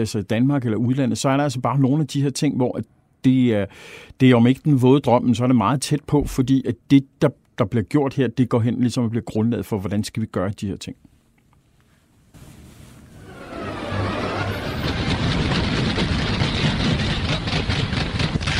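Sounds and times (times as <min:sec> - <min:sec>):
speech: 0:00.0 - 0:11.1
wartime noise from a German newsreel: 0:12.4 - 0:18.5.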